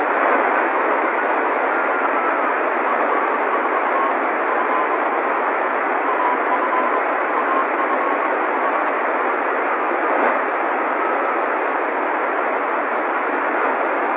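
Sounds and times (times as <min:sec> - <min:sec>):
FO-29 satellite CW signal received on a radio: 0:00.0 - 0:14.1.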